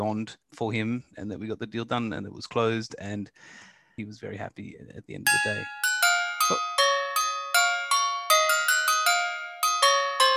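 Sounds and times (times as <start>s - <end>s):
speech: 0.1s - 5.8s, 6.5s - 6.7s
doorbell chiming: 5.3s - 10.3s.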